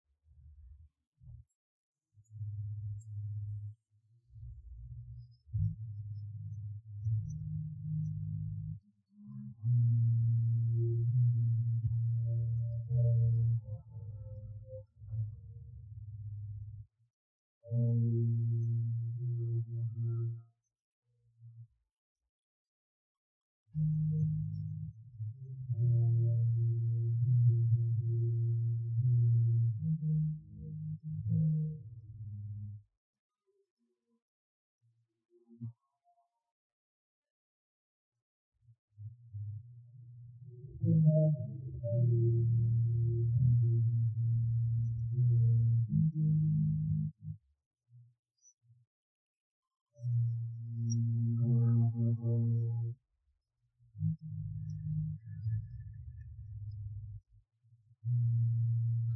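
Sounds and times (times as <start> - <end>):
bass: 2.2 - 17.0, 17.6 - 20.7, 23.7 - 32.9, 39.0 - 47.4, 50.0 - 53.0, 53.8 - 59.1.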